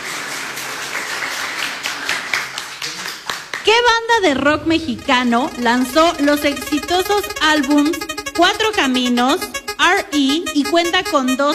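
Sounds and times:
applause for a quiz contestant: 0:00.0 - 0:03.7
speech: 0:03.6 - 0:11.5.

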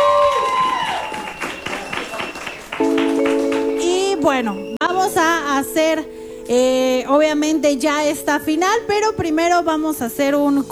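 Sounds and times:
audience applause: 0:00.0 - 0:04.0
speech: 0:04.2 - 0:10.6.

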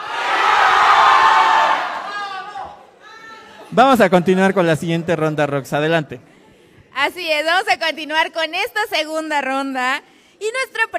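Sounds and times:
university students in a quiz contest cheering for their favourite contestant: 0:00.0 - 0:03.2
speech: 0:03.8 - 0:06.3, 0:07.0 - 0:10.9.

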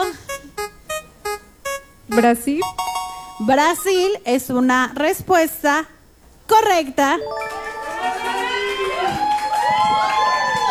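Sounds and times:
speech: 0:02.1 - 0:02.8, 0:03.4 - 0:05.9, 0:06.5 - 0:07.6
studio audience at a quiz show cheering for a contestant: 0:07.2 - 0:10.6.

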